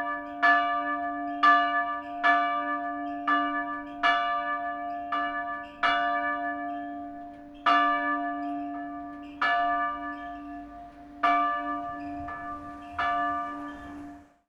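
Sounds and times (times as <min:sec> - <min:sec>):
single small church bell at noon: 0:00.0 - 0:14.4.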